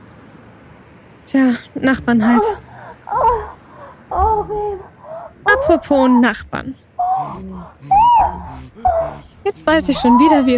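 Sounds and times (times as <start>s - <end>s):
speech: 1.3s - 3.5s, 4.4s - 4.9s, 5.5s - 10.5s
woman sobbing on a balcony: 2.0s - 6.3s, 7.0s - 10.5s.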